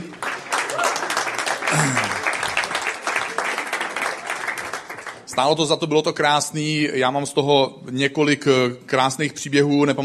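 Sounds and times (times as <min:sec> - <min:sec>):
audience applause: 0:00.0 - 0:05.3
speech: 0:05.4 - 0:10.0.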